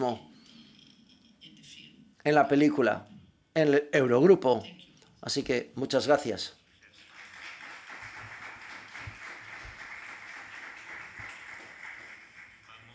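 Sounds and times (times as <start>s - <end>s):
speech: 0.0s - 0.3s, 2.2s - 6.6s
audience applause: 6.9s - 12.9s.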